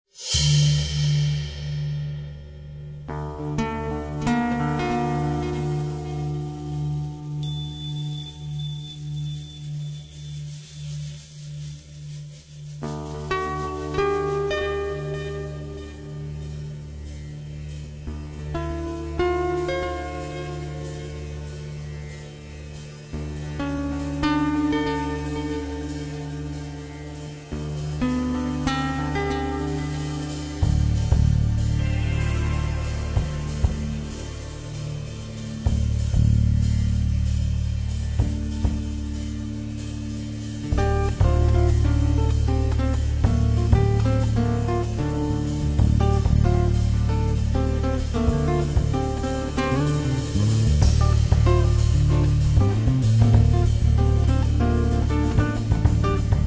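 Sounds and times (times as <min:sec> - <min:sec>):
ambient guitar: 0:00.2 - 0:56.4.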